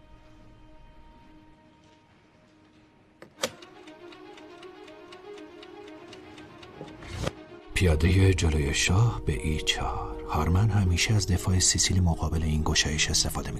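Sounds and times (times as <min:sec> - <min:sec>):
chess clock click: 0:03.2 - 0:07.4
chess clock ticking: 0:03.2 - 0:08.0
speech: 0:07.8 - 0:13.5.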